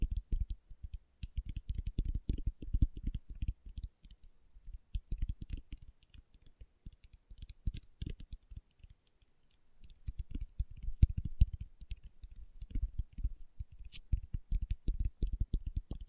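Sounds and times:
fingertips tapping: 0.0 - 16.0.

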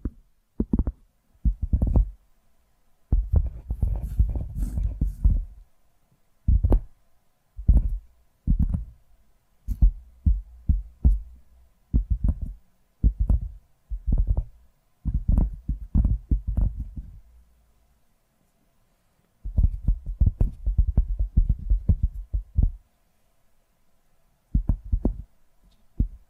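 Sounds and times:
dull low tapping: 0.0 - 2.2, 3.1 - 5.6, 6.5 - 6.9, 7.6 - 9.0, 9.7 - 17.3, 19.4 - 22.8, 24.5 - 25.3, 26.0 - 26.2.

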